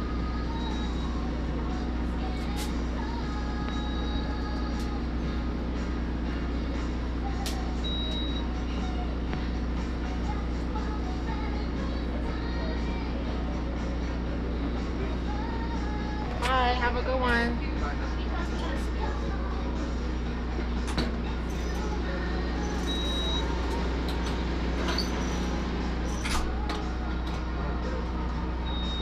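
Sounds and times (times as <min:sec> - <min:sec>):
low engine hum inside a mobile blood donation bus: 0:00.0 - 0:29.0
local radio station playing voices and music: 0:16.3 - 0:19.4.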